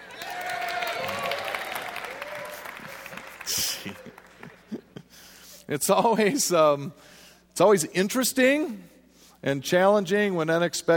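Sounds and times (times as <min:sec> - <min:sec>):
audience applause: 0:00.0 - 0:04.8
laughter: 0:02.5 - 0:05.3
speech: 0:05.7 - 0:10.9.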